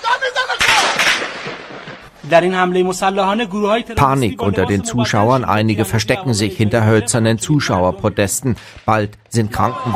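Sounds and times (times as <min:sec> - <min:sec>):
gunfire during attack on military parade in Ahvaz: 0:00.6 - 0:02.2
speech: 0:02.3 - 0:09.9.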